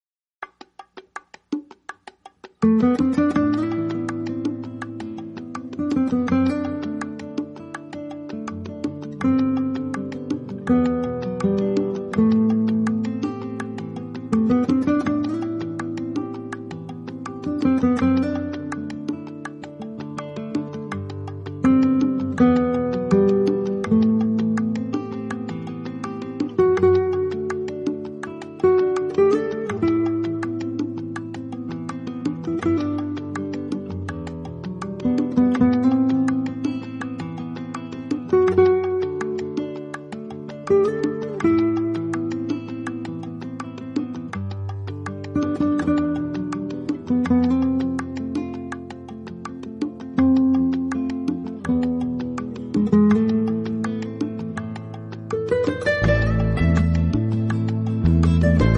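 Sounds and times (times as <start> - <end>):
flamenco music: 0.4 - 58.7.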